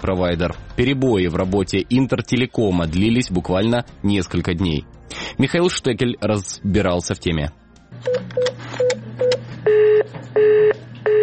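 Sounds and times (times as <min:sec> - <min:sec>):
speech: 0:00.0 - 0:08.6
telephone busy signal: 0:08.1 - 0:11.2.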